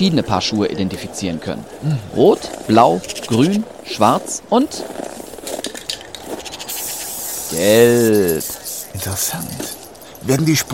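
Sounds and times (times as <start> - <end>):
speech: 0.0 - 5.0, 7.5 - 10.7
scratchy handling noises: 1.6 - 10.4
aerosol spray paint can hissing while marking shoe tracks: 6.4 - 9.7.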